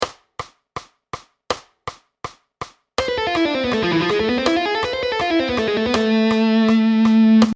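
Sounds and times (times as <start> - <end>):
guitar playing hirajoshi and harmonic minor scales: 3.0 - 7.5.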